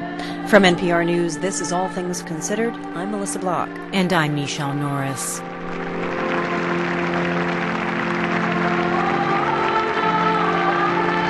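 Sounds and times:
speech: 0:00.5 - 0:06.2
crowd clapping at a funeral gathering in Rome: 0:05.6 - 0:11.2.

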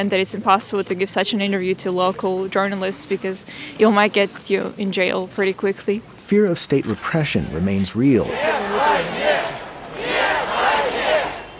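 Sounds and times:
speech: 0:00.0 - 0:09.6
large protest crowd chanting in unison: 0:08.2 - 0:11.5.

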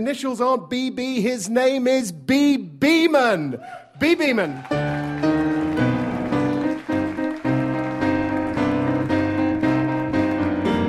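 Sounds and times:
speech: 0:00.0 - 0:04.9
audience clapping along: 0:04.1 - 0:10.8.

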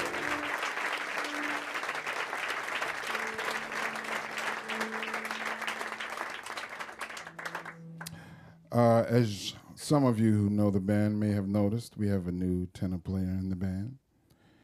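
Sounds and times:
audience applause: 0:00.0 - 0:08.2
speech: 0:08.8 - 0:14.0.

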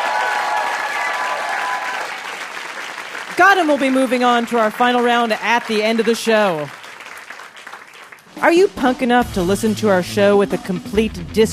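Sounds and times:
crowd clapping: 0:00.0 - 0:08.5
speech: 0:03.4 - 0:06.8, 0:08.4 - 0:11.5.

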